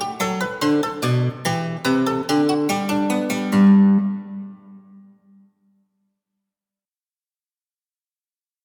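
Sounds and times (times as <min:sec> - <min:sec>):
harpsichord lute tone: 0:00.0 - 0:05.5.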